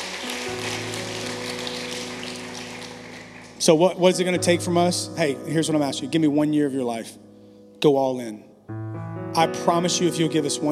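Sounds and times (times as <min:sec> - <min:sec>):
people clapping hands: 0:00.0 - 0:04.0
speech: 0:03.6 - 0:07.2, 0:07.8 - 0:10.7.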